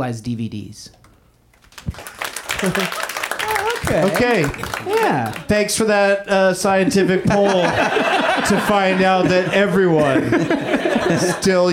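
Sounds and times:
speech: 0.0s - 1.0s, 1.8s - 3.1s, 3.8s - 11.7s
audience round of applause: 1.7s - 5.6s
laughter: 2.4s - 5.6s, 6.3s - 11.7s.

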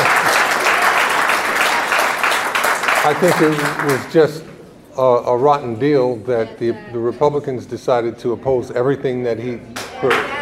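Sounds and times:
audience applause: 0.0s - 4.4s
speech: 3.0s - 10.4s.

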